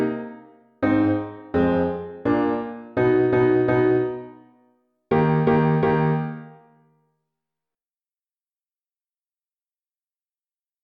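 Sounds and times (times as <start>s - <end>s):
piano accompaniment of a Christmas carol: 0.0s - 4.5s, 5.1s - 6.6s.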